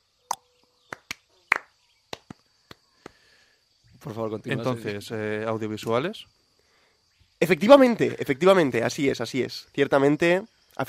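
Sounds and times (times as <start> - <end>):
soft golf clap: 0.9 - 3.2
speech: 4.0 - 6.4, 7.4 - 10.8.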